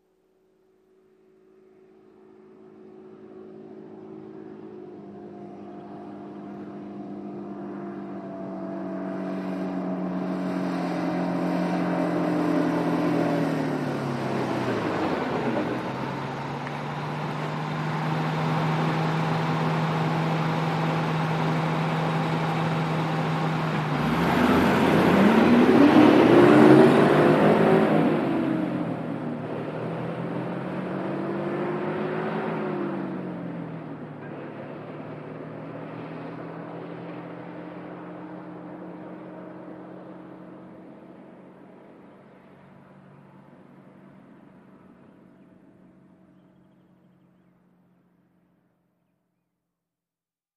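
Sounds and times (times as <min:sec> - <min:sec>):
bus at stop idling and pulling away: 0:01.2 - 0:48.9.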